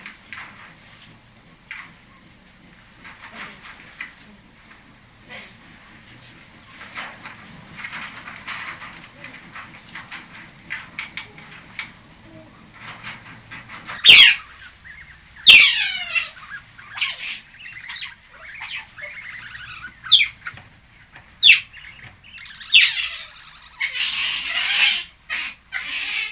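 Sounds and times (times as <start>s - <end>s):
European otter squealing and rasping: 13.9s - 20.6s, 21.4s - 26.3s.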